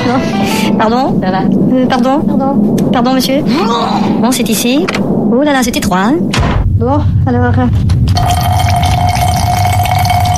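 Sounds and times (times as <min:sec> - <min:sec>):
speech: 0:00.0 - 0:08.4
man urinating into an airplane toilet during turbulence: 0:08.1 - 0:10.3.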